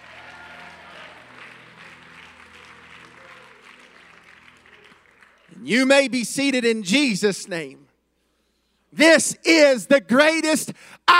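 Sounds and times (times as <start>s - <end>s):
large crowd cheering and shouting praise: 0.0s - 1.7s
large crowd clapping: 0.0s - 5.7s
speech: 5.6s - 7.8s, 9.0s - 11.1s.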